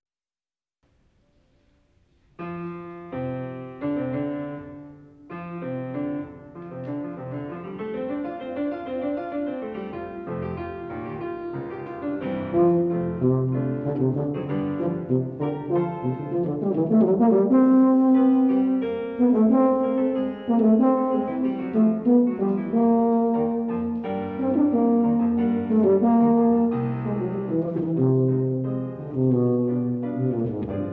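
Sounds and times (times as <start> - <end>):
tuba and piano sonata: 0.9 - 30.9.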